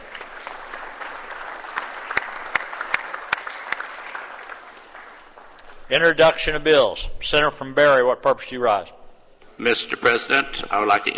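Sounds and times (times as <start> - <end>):
round of applause in the chamber: 0.0 - 5.9
speech: 5.9 - 9.0, 9.6 - 11.1.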